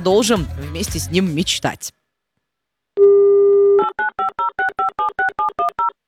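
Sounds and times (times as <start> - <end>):
speech: 0.0 - 2.0
telephone dial tone: 3.0 - 5.9.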